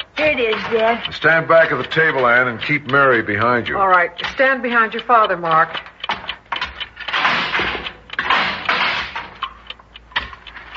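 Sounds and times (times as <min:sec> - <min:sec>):
Geiger counter clicking: 0:00.0 - 0:10.7
speech: 0:00.3 - 0:05.9.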